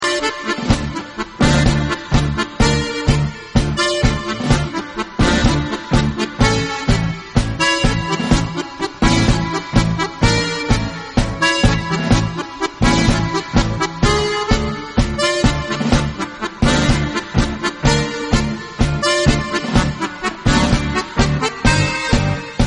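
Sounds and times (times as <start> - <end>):
melancholy tango: 0.0 - 22.6.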